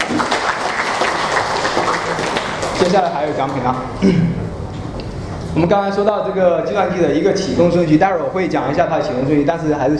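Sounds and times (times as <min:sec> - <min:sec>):
students in a classroom applauding a classmate: 0:00.0 - 0:03.6
speech: 0:02.8 - 0:04.4, 0:05.5 - 0:09.9.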